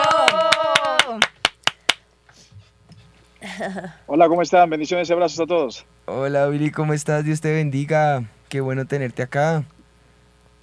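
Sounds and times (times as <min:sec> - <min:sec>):
audience applause: 0:00.0 - 0:02.0
speech: 0:03.6 - 0:09.8.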